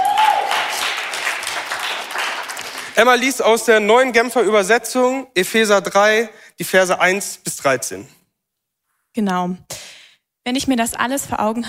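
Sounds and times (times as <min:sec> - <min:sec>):
crowd applauding: 0:00.0 - 0:03.4
speech: 0:03.0 - 0:08.2, 0:09.2 - 0:11.6.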